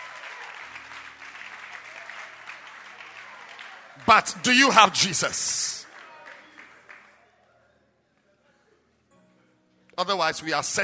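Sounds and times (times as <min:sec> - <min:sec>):
audience applause: 0:00.0 - 0:07.1
speech: 0:04.0 - 0:05.8, 0:10.0 - 0:10.8.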